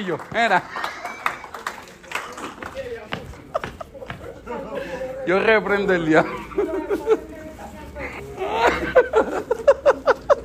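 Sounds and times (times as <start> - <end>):
speech: 0.0 - 0.8, 5.3 - 7.3
audience clapping: 0.0 - 4.2
laughter: 0.0 - 10.4.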